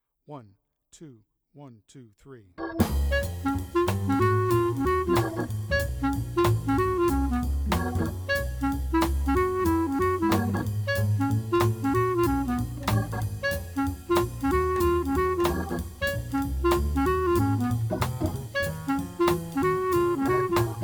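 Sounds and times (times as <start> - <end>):
clarinet playing: 2.8 - 20.8.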